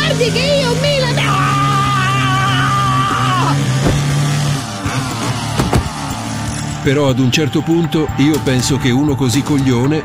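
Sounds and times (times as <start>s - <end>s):
chainsaw engine buzzing: 0.0s - 6.8s
speech: 0.2s - 0.9s, 6.8s - 10.0s
sharp clattering knocks: 3.8s - 4.5s, 5.5s - 6.0s.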